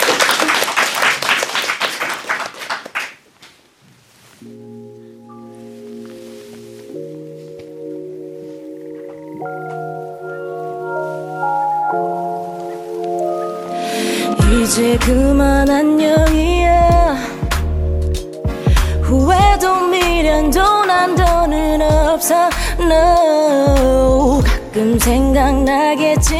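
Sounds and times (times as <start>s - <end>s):
crowd applause: 0.0s - 3.2s
sustained musical chords and soft instrumental intro: 4.4s - 26.3s
speech: 14.7s - 16.3s, 22.2s - 26.3s.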